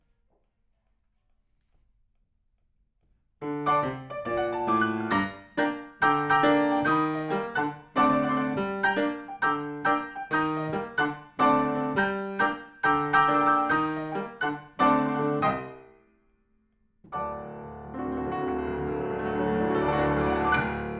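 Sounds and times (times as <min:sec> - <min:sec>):
piano: 0:03.4 - 0:16.0, 0:17.1 - 0:20.9.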